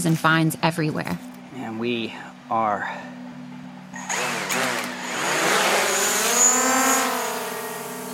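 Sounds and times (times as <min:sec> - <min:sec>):
speech: 0:00.0 - 0:03.2
drone taking off, rotors buzzing: 0:03.1 - 0:08.1.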